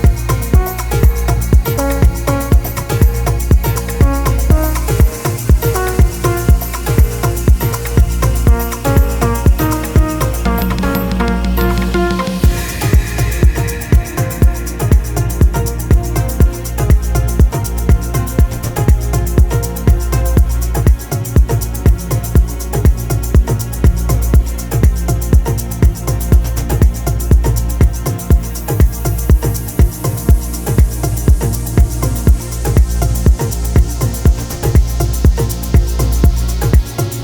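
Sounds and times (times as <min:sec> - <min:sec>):
Afro tech dance music mix: 0:00.0 - 0:37.2.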